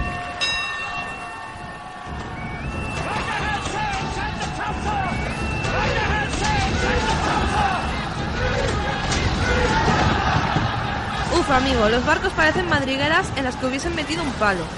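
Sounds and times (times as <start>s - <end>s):
steady ringing tone: 0.0s - 3.2s
officers shouting: 0.0s - 14.7s
overlapping men's voices of sailors: 2.3s - 11.3s
speech: 11.7s - 14.7s.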